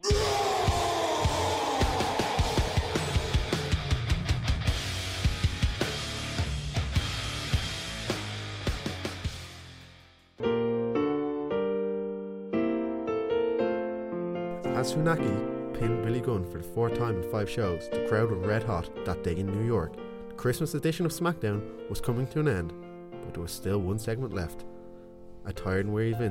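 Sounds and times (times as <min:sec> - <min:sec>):
wrestler's entrance theme music: 0:00.0 - 0:15.8
speech: 0:14.9 - 0:24.7, 0:25.4 - 0:26.2.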